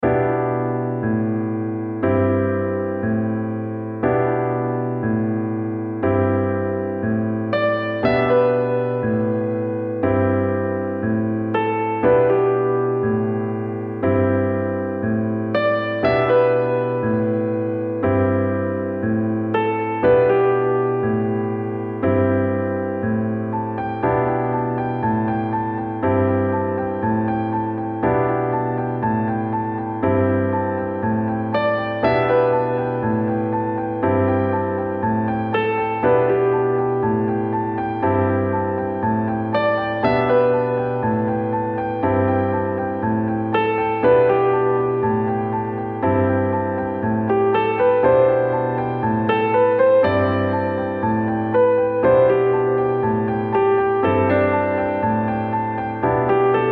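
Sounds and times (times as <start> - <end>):
background music loop: 0.0 - 56.6.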